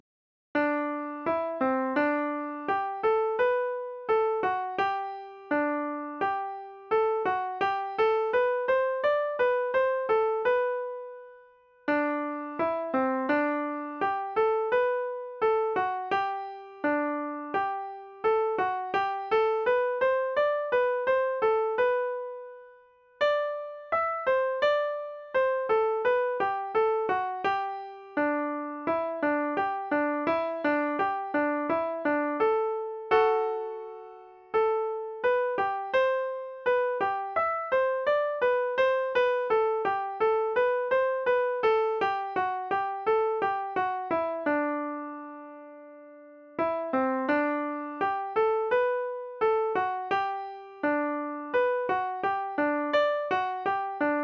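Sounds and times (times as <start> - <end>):
musette, right hand: 0.6 - 54.2.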